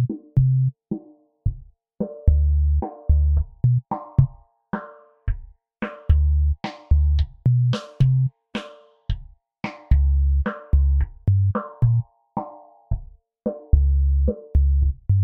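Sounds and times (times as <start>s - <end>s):
bass: 0.0s - 0.8s, 2.2s - 4.4s, 6.0s - 8.3s, 9.9s - 12.1s, 13.7s - 15.2s.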